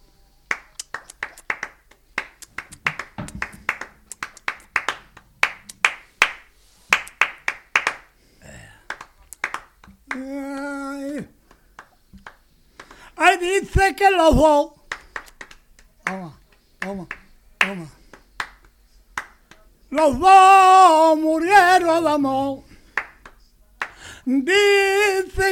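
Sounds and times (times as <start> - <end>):
flamenco palmas hand clapping in bulería rhythm: 0.5 - 8.1, 8.9 - 10.7, 11.5 - 13.0, 14.9 - 19.6, 23.0 - 24.0
speech: 13.5 - 14.8, 20.0 - 22.6, 24.3 - 25.5.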